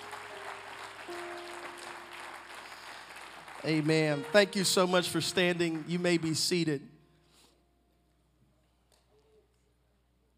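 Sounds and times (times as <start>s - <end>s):
audience clapping hands: 0.0s - 6.9s
speech: 3.6s - 6.9s.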